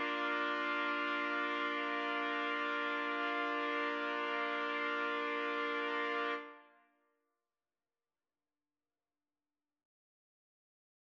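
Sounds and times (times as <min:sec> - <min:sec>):
trumpets playing: 0:00.0 - 0:06.6.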